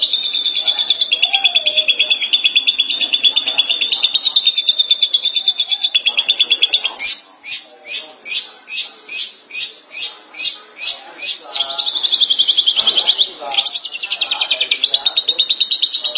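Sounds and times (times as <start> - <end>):
shrike singing: 0.0 - 16.1.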